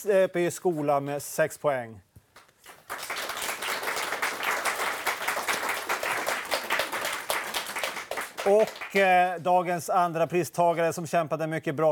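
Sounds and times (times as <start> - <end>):
speech: 0.0 - 2.1, 8.4 - 11.9
crowd applause: 2.7 - 9.1.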